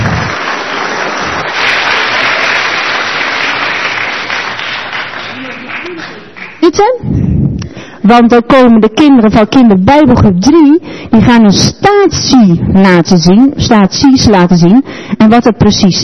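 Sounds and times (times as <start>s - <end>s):
church audience applause: 0.0s - 6.6s
speech: 6.7s - 7.2s, 8.1s - 16.0s.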